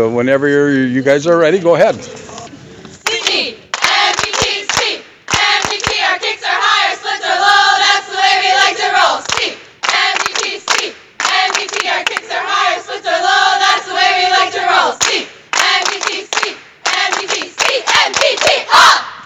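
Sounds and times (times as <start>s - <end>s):
speech: 0.0s - 2.3s
clapping: 3.0s - 6.1s, 9.2s - 12.3s, 15.0s - 18.7s
cheerleading squad shouting a cheer: 3.0s - 19.2s.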